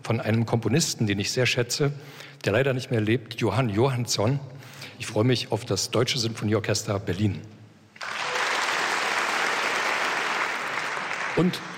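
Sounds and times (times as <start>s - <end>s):
speech: 0.1s - 7.6s, 11.4s - 11.7s
concert audience applause: 8.0s - 11.7s.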